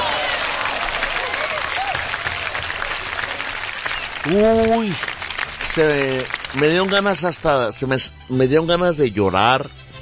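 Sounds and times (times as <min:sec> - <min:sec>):
audience applause: 0:00.0 - 0:07.6
speech: 0:04.2 - 0:05.1, 0:05.8 - 0:09.8.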